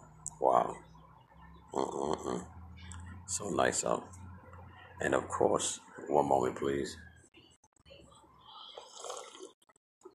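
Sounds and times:
speech: 0:03.3 - 0:04.2, 0:05.0 - 0:07.0
slurping coffee: 0:08.7 - 0:09.7.

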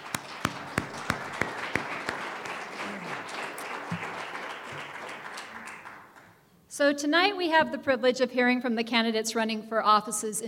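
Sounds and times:
audience applause: 0:00.0 - 0:06.3
speech: 0:06.8 - 0:10.4.

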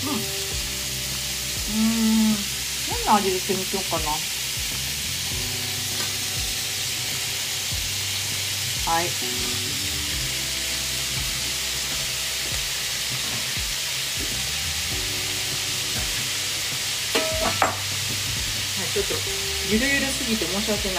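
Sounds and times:
food stir-frying in a pan: 0:00.0 - 0:20.9
speech: 0:03.1 - 0:04.4, 0:08.9 - 0:09.6, 0:18.9 - 0:20.9.

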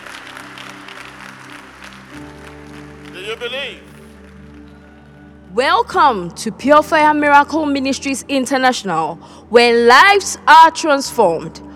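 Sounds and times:
church congregation clapping at a worship service: 0:00.0 - 0:05.5
speech: 0:03.2 - 0:03.9, 0:05.5 - 0:11.7.

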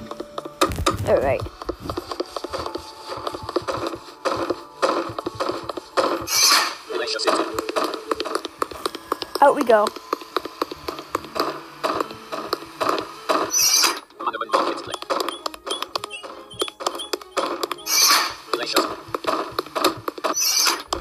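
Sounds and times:
video game footstep sound effects: 0:00.0 - 0:13.5, 0:14.6 - 0:20.9
speech: 0:01.1 - 0:01.6, 0:09.4 - 0:10.0
high squeaky chirps: 0:15.3 - 0:18.4, 0:20.2 - 0:20.9.

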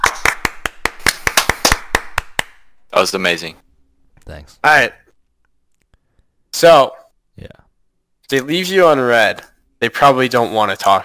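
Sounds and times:
applause hands clapping: 0:00.0 - 0:02.7
speech: 0:03.0 - 0:03.6, 0:04.3 - 0:05.0, 0:06.5 - 0:07.6, 0:08.3 - 0:11.0.

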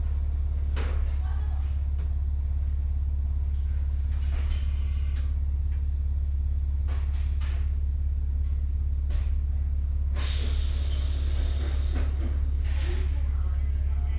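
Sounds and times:
deep rumble inside a Hokuriku Railway Ishikawa Line train: 0:00.0 - 0:14.1
bright rattling and hiss in a train: 0:10.1 - 0:13.2.

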